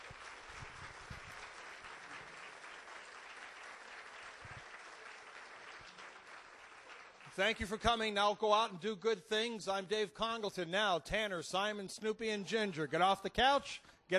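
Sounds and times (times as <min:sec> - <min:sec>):
audience applause: 0:00.0 - 0:07.8
speech: 0:07.4 - 0:14.1.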